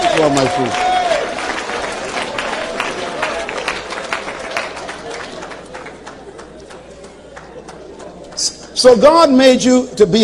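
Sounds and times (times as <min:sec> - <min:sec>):
scattered voices and cheers: 0:00.0 - 0:01.4
large crowd clapping: 0:00.0 - 0:09.1
speech: 0:00.2 - 0:00.8, 0:08.8 - 0:10.2.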